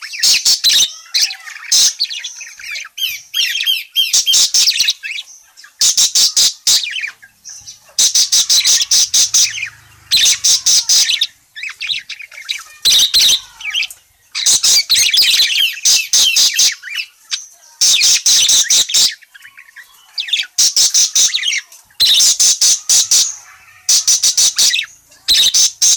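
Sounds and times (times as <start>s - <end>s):
parakeet chattering: 0.0s - 25.9s.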